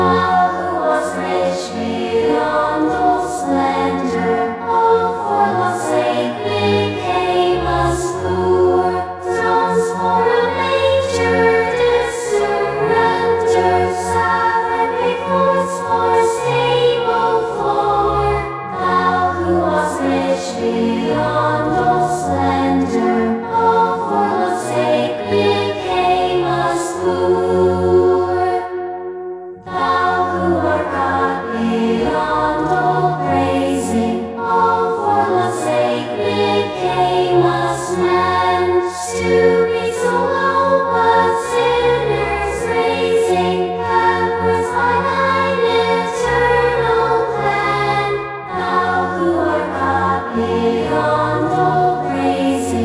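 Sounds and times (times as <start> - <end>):
choir singing: 0.0 - 52.8.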